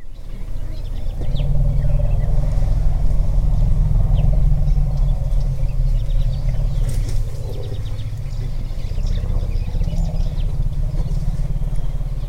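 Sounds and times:
African elephant low rumble vocalization: 0.0s - 12.2s.

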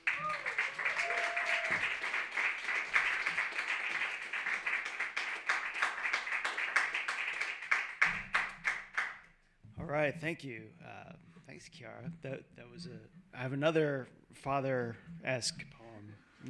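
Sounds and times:
crowd applause: 0.0s - 9.1s
speech: 10.0s - 15.8s.

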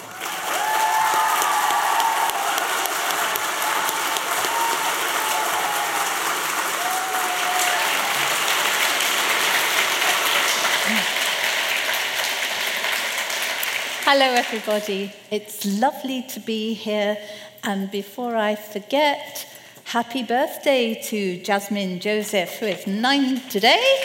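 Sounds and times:
audience applause welcoming an author onto the stage: 0.0s - 14.9s
speech: 14.1s - 24.0s.

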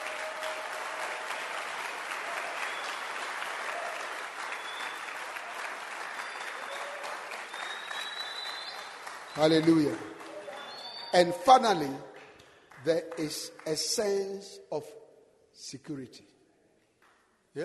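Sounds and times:
audience clapping hands: 0.0s - 14.3s
speech: 9.4s - 10.1s, 11.1s - 12.1s, 12.8s - 15.0s, 15.6s - 16.3s.

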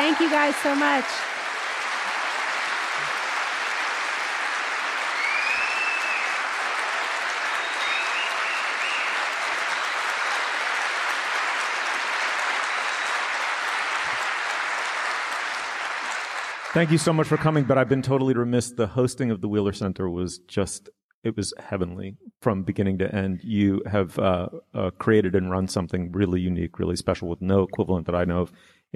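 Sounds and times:
audience round of applause: 0.0s - 18.3s
speech: 0.2s - 1.3s, 16.7s - 28.9s.

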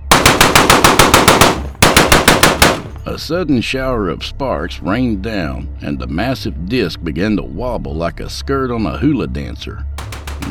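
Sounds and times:
rapid automatic gunfire barrage: 0.0s - 3.0s, 10.0s - 10.5s
speech: 3.1s - 10.5s.

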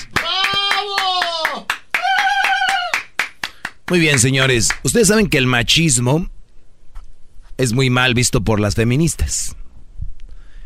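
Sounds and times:
applause: 0.0s - 4.9s
speech: 3.9s - 6.4s, 7.6s - 9.6s.

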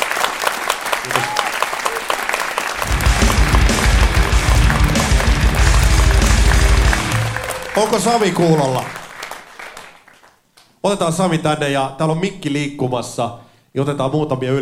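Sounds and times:
audience applause: 0.0s - 10.4s
speech: 7.8s - 9.0s, 10.8s - 14.6s.

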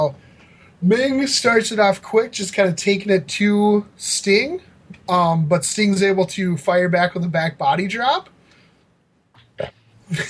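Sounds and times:
speech: 0.0s - 0.2s, 0.8s - 8.4s, 9.6s - 10.2s
throaty burps: 9.4s - 9.9s.

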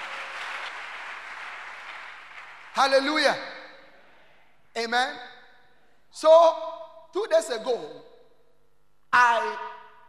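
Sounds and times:
audience clapping hands: 0.0s - 3.4s
speech: 2.8s - 3.5s, 4.8s - 5.3s, 6.1s - 8.1s, 9.1s - 9.7s.

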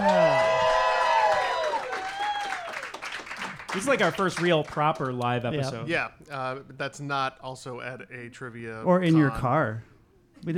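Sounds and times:
crowd cheering at the G-Man Tavern in Chicago: 0.0s - 5.1s
clapping: 0.0s - 5.4s
speech: 3.8s - 10.5s.

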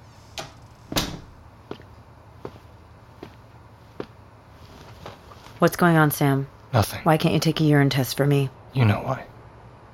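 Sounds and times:
door closing: 0.4s - 1.4s
speech: 5.6s - 9.3s.

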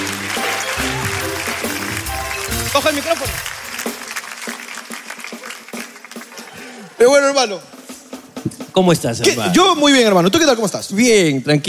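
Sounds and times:
applause: 0.0s - 6.8s
speech: 2.8s - 3.6s, 7.0s - 7.7s, 8.8s - 11.6s.

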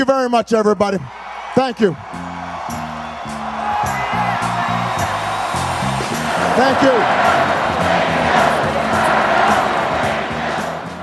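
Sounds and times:
speech: 0.0s - 2.8s, 6.6s - 7.4s
general crowd noise at a campaign rally: 1.0s - 11.0s
campaign rally crowd chanting in call-and-response: 3.1s - 11.0s.

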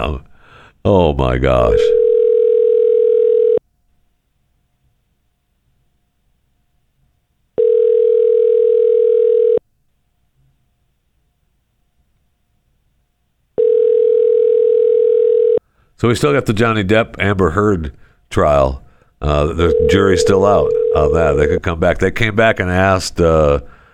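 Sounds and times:
speech: 0.0s - 2.0s, 16.0s - 23.8s
telephone ringback tones on a call waiting to be answered: 1.9s - 3.6s, 7.6s - 9.6s, 13.6s - 15.6s, 19.6s - 21.2s.

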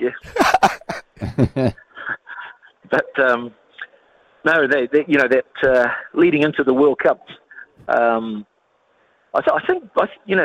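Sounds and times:
speech: 0.0s - 0.8s, 3.3s - 3.6s, 4.4s - 8.5s, 9.3s - 10.4s
laughter: 0.2s - 2.2s
throat clearing: 0.3s - 1.6s.

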